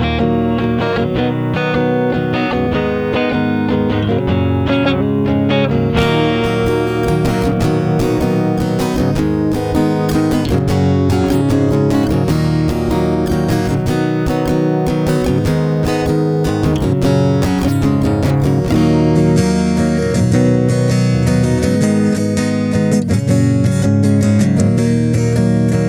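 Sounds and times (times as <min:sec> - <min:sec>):
acoustic guitar: 0:00.0 - 0:25.8.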